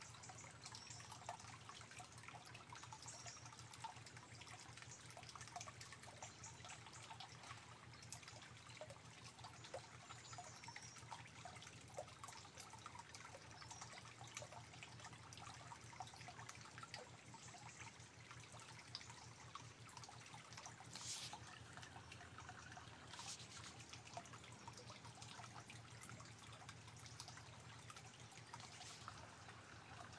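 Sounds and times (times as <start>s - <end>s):
stream flowing: 0.0s - 30.1s.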